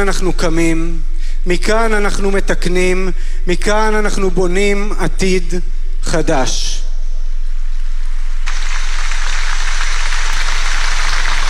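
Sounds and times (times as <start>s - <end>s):
speech: 0.0s - 6.8s
stormy applause from audience: 8.5s - 11.4s.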